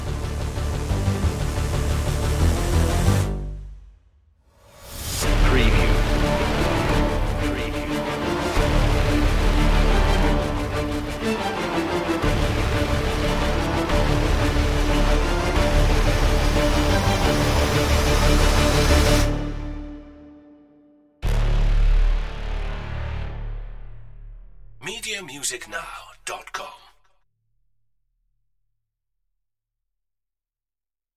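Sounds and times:
hybrid trailer music without drums or hits: 0.0 - 24.8.

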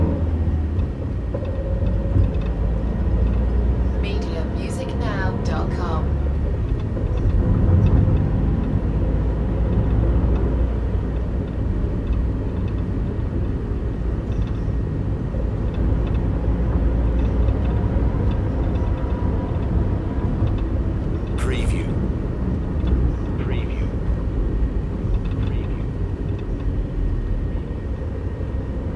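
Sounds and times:
van driving: 0.0 - 28.9.

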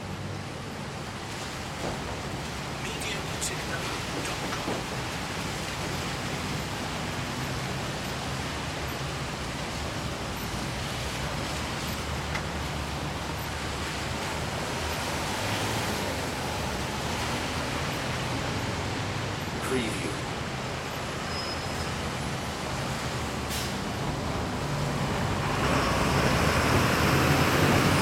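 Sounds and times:
heavy traffic at a street crossing: 0.0 - 28.0
rain on a summer day: 0.0 - 28.0.

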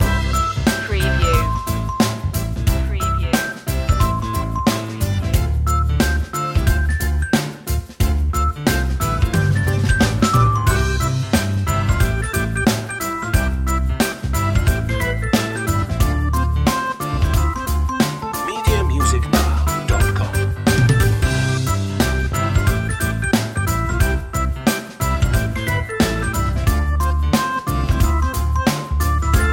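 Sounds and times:
happy walking music loop: 0.0 - 29.5.

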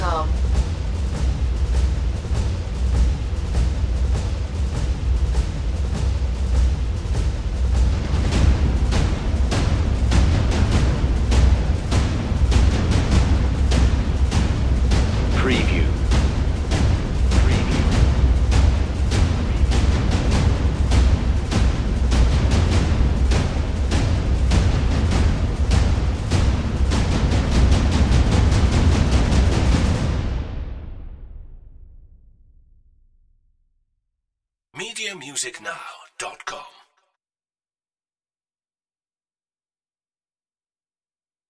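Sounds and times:
percussion: 0.0 - 31.2.

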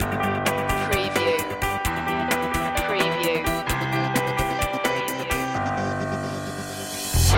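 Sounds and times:
music loop breakdown: 0.0 - 7.3.

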